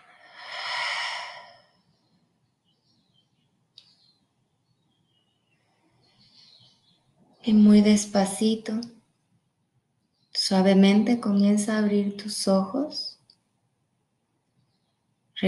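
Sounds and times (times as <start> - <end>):
deep breath exhaled through the mouth during a guided relaxation exercise: 0.0 - 1.7
faint bird chirps: 0.0 - 8.6
speech: 7.4 - 9.0, 10.5 - 13.2.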